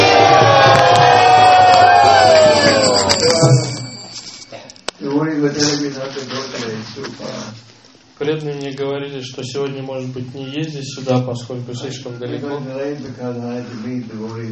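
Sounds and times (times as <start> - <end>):
crowd shouting: 0.0 - 3.7
speech: 8.2 - 14.5.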